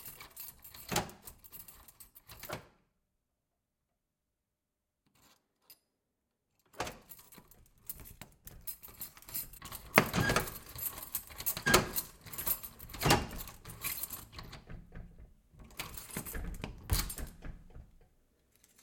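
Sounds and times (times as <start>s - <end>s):
key unlocking an armored metal and wood front door: 0.0s - 2.7s, 6.7s - 18.8s.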